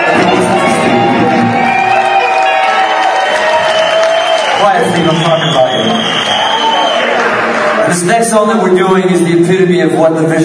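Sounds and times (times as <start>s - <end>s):
whoops and shouts: 0.0s - 7.2s
crowd cheering and applauding: 0.0s - 8.8s
speech: 8.2s - 10.4s.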